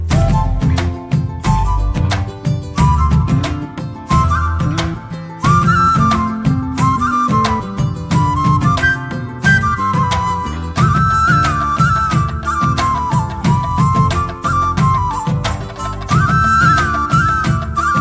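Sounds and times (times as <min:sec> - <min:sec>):
ringtone: 0:00.2 - 0:17.9.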